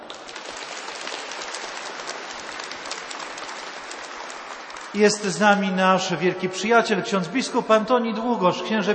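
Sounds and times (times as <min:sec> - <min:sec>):
audience applause: 0:00.0 - 0:05.6
speech: 0:04.9 - 0:08.9.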